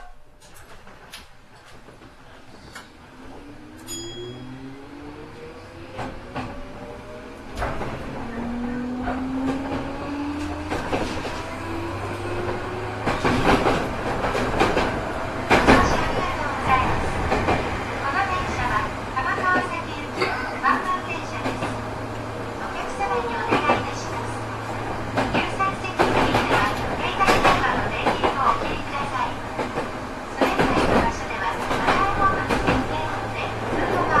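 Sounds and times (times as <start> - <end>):
205 series train on the Nambu branch line: 0.0 - 34.1.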